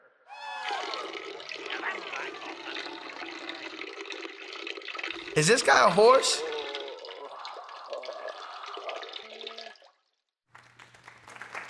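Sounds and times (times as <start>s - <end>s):
man urinating into a toilet: 0.3s - 10.1s
speech: 5.4s - 6.5s.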